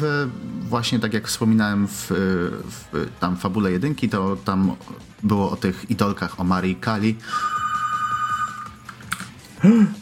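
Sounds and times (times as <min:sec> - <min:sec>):
speech: 0:00.0 - 0:07.6, 0:09.6 - 0:09.9
telephone ringing: 0:07.2 - 0:08.9.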